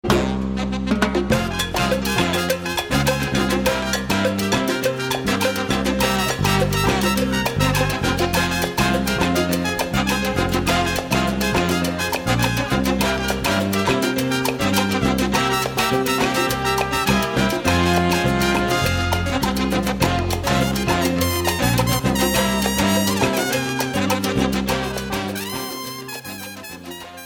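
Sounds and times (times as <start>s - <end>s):
salsa music: 0.0s - 27.2s.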